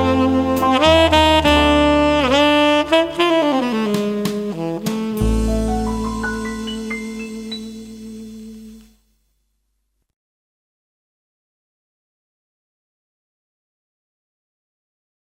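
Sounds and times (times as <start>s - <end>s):
jazz piano melody: 0.0s - 9.0s.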